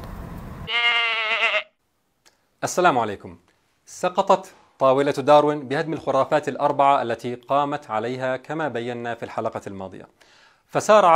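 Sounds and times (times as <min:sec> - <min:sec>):
speech: 0:00.7 - 0:01.0, 0:02.6 - 0:11.1
goat bleating: 0:00.7 - 0:01.8.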